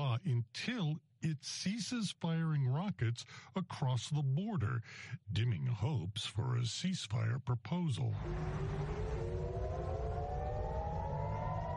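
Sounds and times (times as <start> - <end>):
speech: 0.2 - 9.0
air raid sirens: 8.1 - 11.7.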